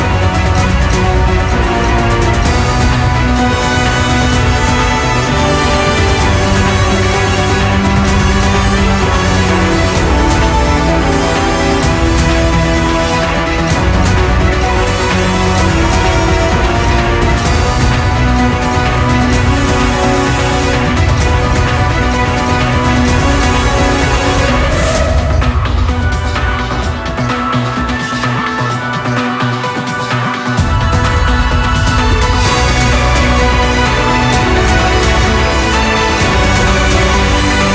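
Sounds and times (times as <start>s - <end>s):
battle background music: 0.0s - 37.7s.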